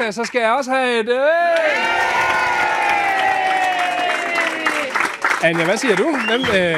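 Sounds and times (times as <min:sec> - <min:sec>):
speech: 0:00.0 - 0:03.0, 0:05.4 - 0:06.7
studio audience cheering to vote for a favourite act: 0:01.4 - 0:06.7.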